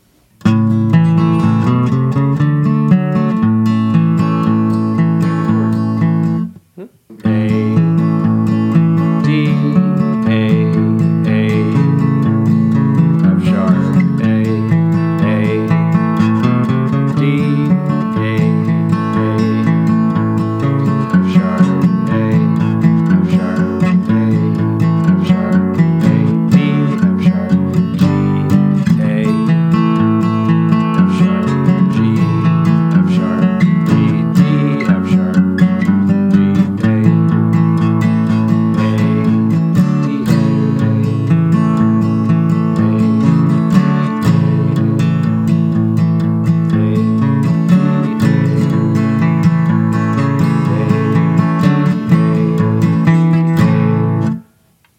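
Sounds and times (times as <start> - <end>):
guitar: 0.0 - 54.9.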